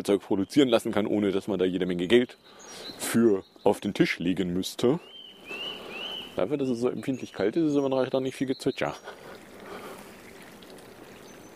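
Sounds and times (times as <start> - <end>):
speech: 0.0 - 5.6, 6.4 - 9.2
splashing, babbling water: 8.9 - 11.5.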